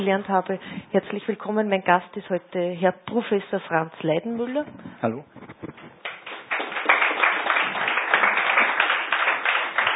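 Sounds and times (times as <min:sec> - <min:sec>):
speech: 0:00.0 - 0:05.4
audience applause: 0:06.0 - 0:09.9.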